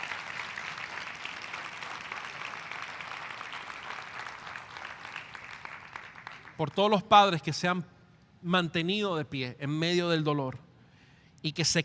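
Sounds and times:
audience applause: 0:00.0 - 0:06.6
speech: 0:06.6 - 0:10.6, 0:11.4 - 0:11.8.

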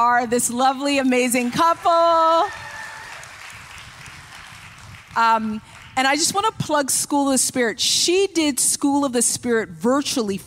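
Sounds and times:
speech: 0:00.0 - 0:02.6, 0:05.2 - 0:10.4
church audience clapping: 0:01.4 - 0:06.1.

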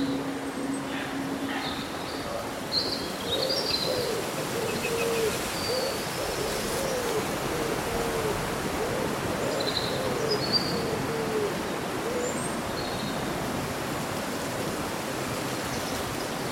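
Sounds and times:
rustling leaves: 0:00.0 - 0:16.5.

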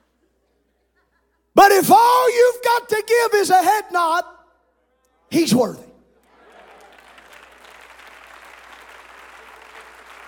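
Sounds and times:
speech: 0:01.6 - 0:04.4, 0:05.3 - 0:05.9
audience clapping hands: 0:06.2 - 0:10.2.

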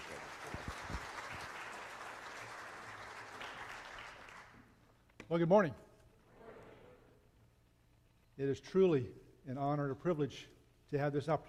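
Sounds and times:
church congregation at a morning service applauding a guest speaker: 0:00.0 - 0:04.8
speech: 0:05.3 - 0:05.9, 0:08.4 - 0:11.4.

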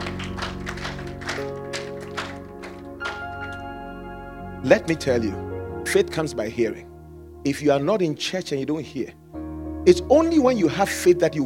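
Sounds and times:
audience clapping: 0:00.0 - 0:03.8
speech: 0:04.6 - 0:09.2, 0:09.8 - 0:11.4.

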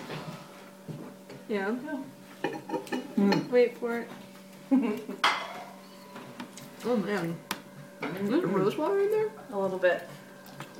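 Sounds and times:
speech: 0:01.5 - 0:05.4, 0:06.8 - 0:10.1
plates and cutlery clinking: 0:02.4 - 0:03.5, 0:05.2 - 0:06.2.

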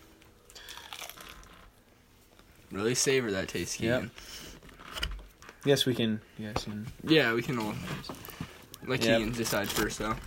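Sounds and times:
biting into crunchy spicy chicken tender: 0:00.5 - 0:01.5
speech: 0:02.7 - 0:04.4, 0:05.6 - 0:10.2.

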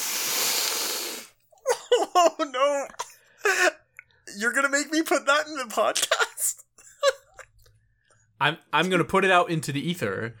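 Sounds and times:
voice imitating a loud sniff: 0:00.0 - 0:01.4
speech: 0:02.2 - 0:03.7, 0:04.4 - 0:06.6, 0:08.4 - 0:10.3.

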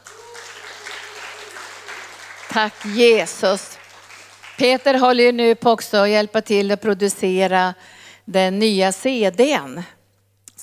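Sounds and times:
audience applause: 0:00.0 - 0:05.0
speech: 0:02.6 - 0:03.8, 0:04.6 - 0:10.0.

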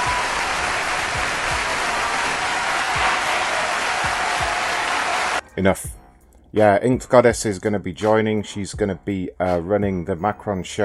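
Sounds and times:
cheering sound effect of crowd clapping and whooping: 0:00.0 - 0:05.4
speech: 0:05.6 - 0:10.8.

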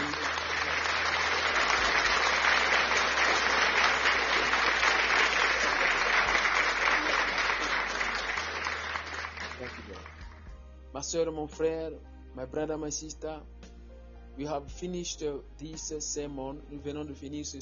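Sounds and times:
audience applause: 0:00.0 - 0:10.4
speech: 0:11.1 - 0:13.6, 0:14.4 - 0:17.6.

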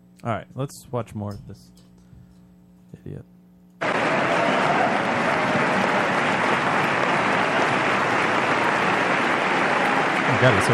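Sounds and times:
speech: 0:00.2 - 0:01.9, 0:03.0 - 0:03.4, 0:10.4 - 0:10.7
crowd clapping: 0:03.8 - 0:10.7.

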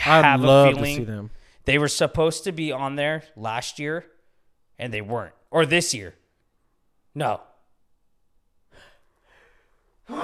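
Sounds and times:
speech: 0:00.1 - 0:04.1, 0:04.8 - 0:06.2, 0:07.2 - 0:07.5, 0:10.1 - 0:10.2
breathy inhales: 0:08.7 - 0:09.8
loud sneeze: 0:10.1 - 0:10.2.

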